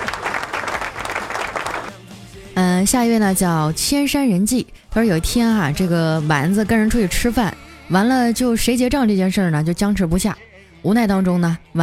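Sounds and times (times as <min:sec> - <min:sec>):
audience applause: 0:00.0 - 0:02.0
speech: 0:02.6 - 0:11.8.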